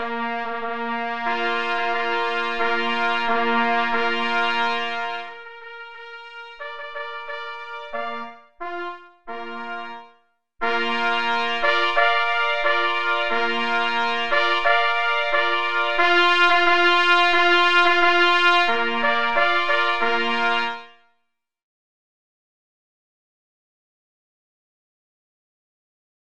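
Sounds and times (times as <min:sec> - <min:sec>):
march: 0:00.0 - 0:10.0, 0:10.6 - 0:20.9.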